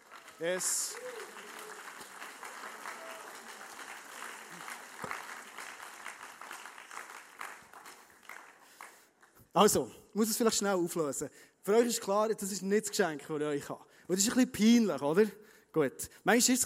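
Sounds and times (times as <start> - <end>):
audience applause: 0.0 - 9.1
speech: 0.4 - 1.2, 9.6 - 16.6.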